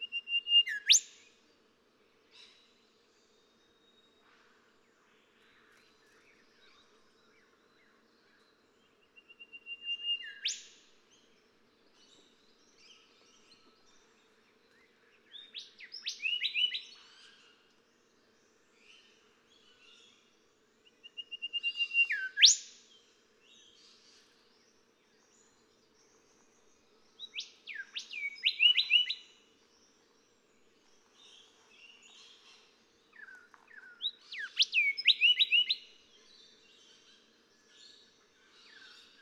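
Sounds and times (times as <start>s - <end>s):
golden whistler singing: 0.0s - 1.4s, 2.2s - 39.1s.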